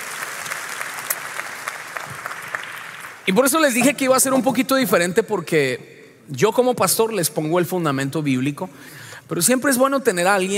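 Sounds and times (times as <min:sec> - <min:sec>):
audience applause: 0:00.0 - 0:03.3
speech: 0:03.2 - 0:10.5.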